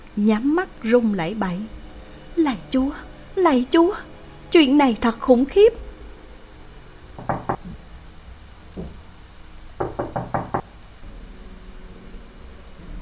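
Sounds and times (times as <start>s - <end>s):
speech: 0.2s - 1.8s, 2.4s - 5.8s
knocking on a window: 7.2s - 7.8s, 9.8s - 10.7s.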